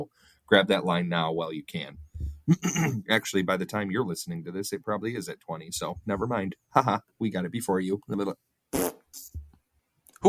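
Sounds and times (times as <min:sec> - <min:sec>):
speech: 0:00.0 - 0:08.5
person having a coughing fit: 0:02.5 - 0:03.0.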